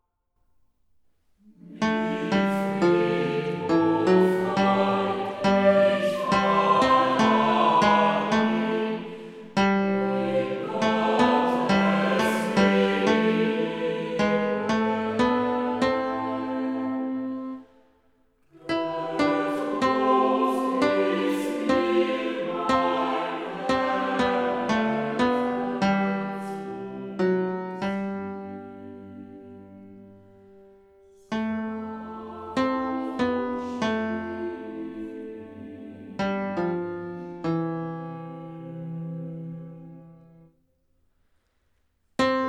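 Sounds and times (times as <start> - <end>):
tenor singing: 1.4 - 17.6, 18.5 - 30.0, 31.3 - 36.6.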